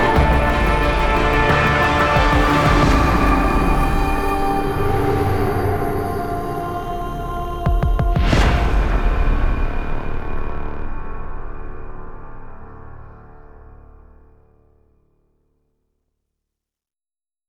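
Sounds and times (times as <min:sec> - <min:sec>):
opening credits music with sound effects: 0:00.0 - 0:10.1.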